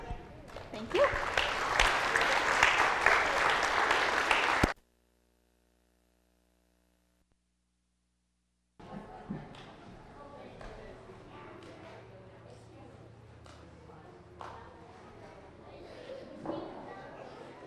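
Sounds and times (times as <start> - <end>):
audience applause: 0.5 - 4.8.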